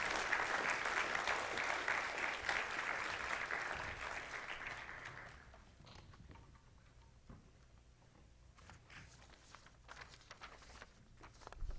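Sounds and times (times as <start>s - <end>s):
audience applause: 0.0s - 5.6s.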